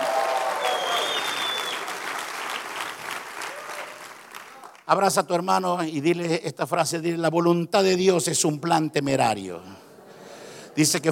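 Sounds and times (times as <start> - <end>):
audience cheers and whoops: 0.0 - 2.0, 3.4 - 4.1
audience applauding: 0.0 - 4.9
speech: 4.9 - 9.9, 10.8 - 11.1.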